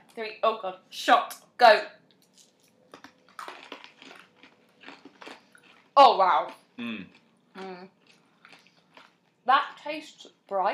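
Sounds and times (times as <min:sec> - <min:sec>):
speech: 0:00.2 - 0:02.0, 0:06.0 - 0:08.0, 0:09.5 - 0:10.7
people chewing a handful of Nerds candy: 0:02.2 - 0:09.4.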